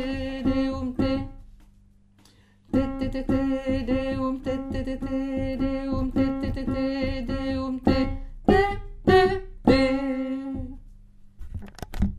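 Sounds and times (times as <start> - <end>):
alto voice singing a chorale: 0.0 - 1.4, 2.7 - 10.8.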